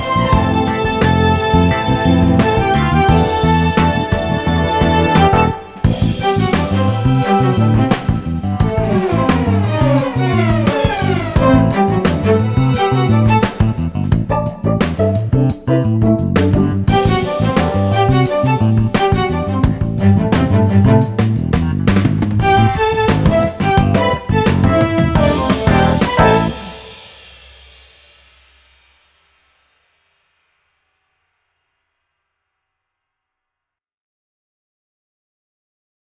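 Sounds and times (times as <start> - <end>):
strings: 0.0 - 27.3.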